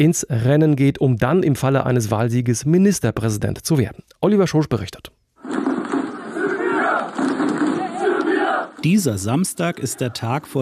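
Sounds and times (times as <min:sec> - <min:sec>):
speech: 0:00.0 - 0:05.6, 0:08.8 - 0:10.5
tens of thousands of rally supporters roaring and chanting: 0:05.4 - 0:10.5.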